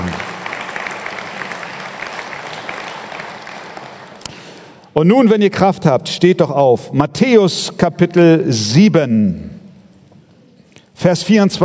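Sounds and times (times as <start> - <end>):
audience clapping: 0.0 - 4.9
speech: 5.0 - 9.6, 11.0 - 11.6.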